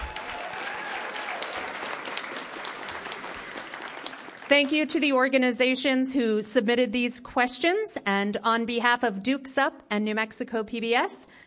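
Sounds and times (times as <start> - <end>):
audience applause: 0.0 - 4.8
speech: 4.5 - 11.4.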